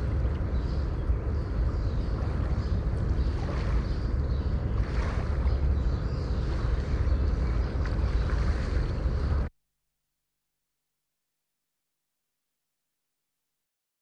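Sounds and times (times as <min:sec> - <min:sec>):
sea harbour noise: 0:00.0 - 0:09.5.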